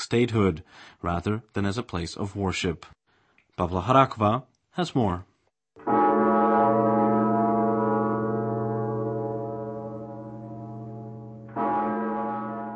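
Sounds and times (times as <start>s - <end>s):
speech: 0.1s - 3.0s, 3.6s - 6.0s
Zikmund Bell ringing from the cathedral tower over Prague: 5.8s - 12.7s.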